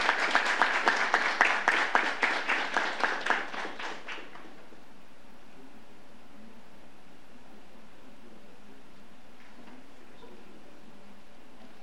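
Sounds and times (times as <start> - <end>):
audience applauding: 0.0 - 4.5.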